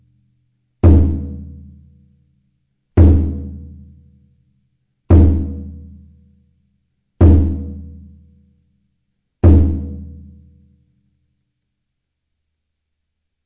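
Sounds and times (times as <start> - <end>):
taiko drums: 0.8 - 1.7, 3.0 - 3.9, 5.1 - 6.0, 7.2 - 8.1, 9.4 - 10.3.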